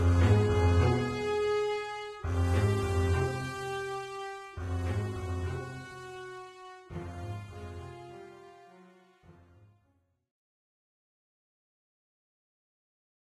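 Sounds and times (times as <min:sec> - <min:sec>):
tension music: 0:00.0 - 0:09.4.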